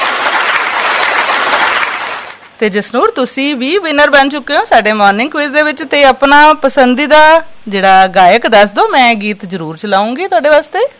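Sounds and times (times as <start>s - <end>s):
applause for a morning quiz winner: 0.0s - 2.5s
speech: 2.6s - 10.9s.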